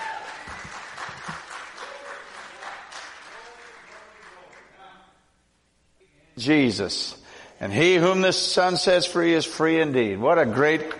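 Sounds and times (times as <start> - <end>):
church audience applause welcoming a visiting pastor: 0.0 - 4.6
speech: 6.4 - 10.9.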